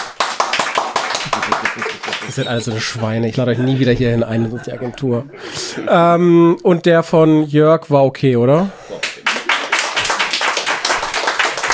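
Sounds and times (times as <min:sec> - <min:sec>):
audience clapping: 0:00.0 - 0:03.0, 0:08.9 - 0:11.7
laughter: 0:01.2 - 0:06.2, 0:08.8 - 0:11.2
speech: 0:01.8 - 0:08.8.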